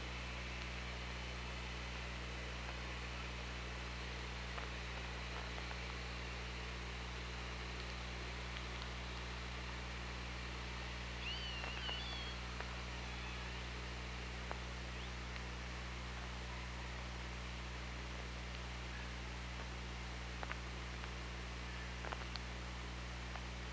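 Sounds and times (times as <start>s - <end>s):
steady hum and hiss: 0.0s - 23.7s
orca call: 11.2s - 12.4s, 13.0s - 13.7s.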